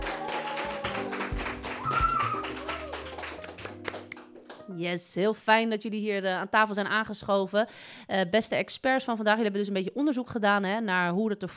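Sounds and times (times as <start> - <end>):
audience applause: 0.0 - 4.7
speech: 4.8 - 11.5.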